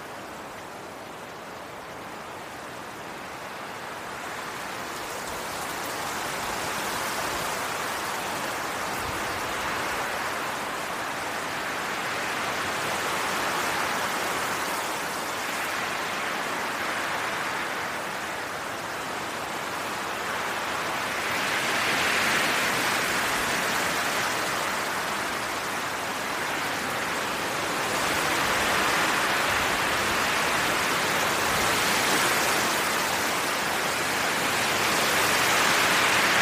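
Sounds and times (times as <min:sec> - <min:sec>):
wind rushing through forest leaves: 0:00.0 - 0:36.4.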